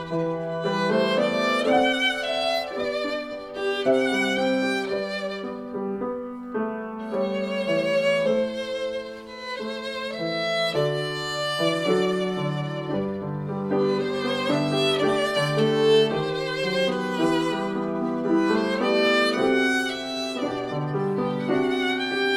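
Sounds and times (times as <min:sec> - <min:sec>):
piano: 0:00.0 - 0:22.3
violin: 0:00.0 - 0:22.3.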